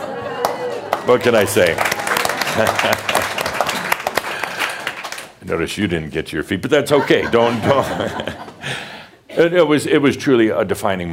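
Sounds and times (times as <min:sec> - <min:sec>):
audience applause: 0:00.0 - 0:05.4
speech: 0:01.0 - 0:02.0, 0:02.6 - 0:03.3, 0:05.5 - 0:11.1
laughter: 0:02.2 - 0:04.8, 0:06.8 - 0:08.8.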